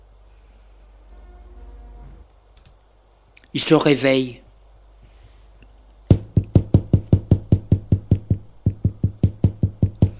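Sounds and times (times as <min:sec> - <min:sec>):
speech: 0:03.6 - 0:04.4
knocking on a door: 0:06.1 - 0:10.1.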